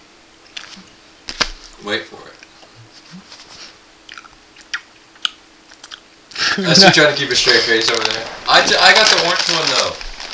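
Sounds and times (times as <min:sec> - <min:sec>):
speech: 0:01.8 - 0:02.4, 0:06.6 - 0:10.1
wet chewing of food: 0:04.1 - 0:06.1.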